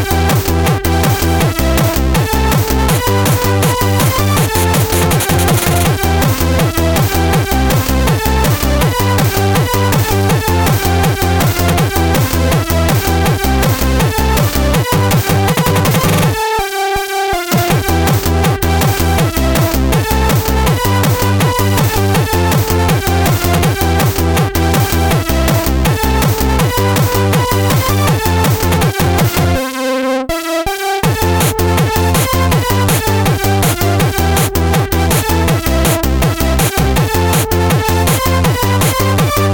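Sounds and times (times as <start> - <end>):
8-bit style music: 0.0 - 39.5.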